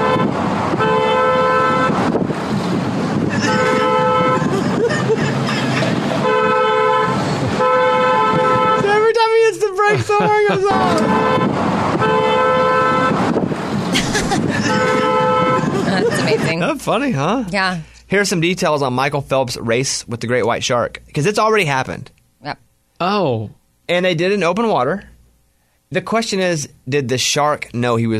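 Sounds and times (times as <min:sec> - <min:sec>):
car horn honking when brakes pressed: 0:00.0 - 0:02.3, 0:03.2 - 0:04.8, 0:05.9 - 0:13.5, 0:14.5 - 0:16.7
laughter: 0:03.3 - 0:06.3, 0:09.7 - 0:11.2, 0:13.9 - 0:16.8
speech: 0:16.9 - 0:25.1, 0:25.9 - 0:28.1.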